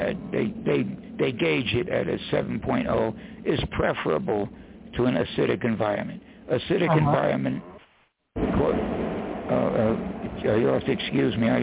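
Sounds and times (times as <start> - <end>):
speech: 0.4 - 7.7, 8.4 - 11.6
thunder crash: 8.4 - 10.8.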